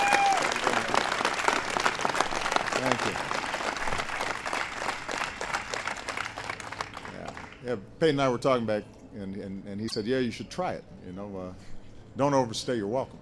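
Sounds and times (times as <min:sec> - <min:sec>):
audience applause: 0:00.0 - 0:07.6
speech: 0:02.8 - 0:03.4, 0:07.7 - 0:13.2.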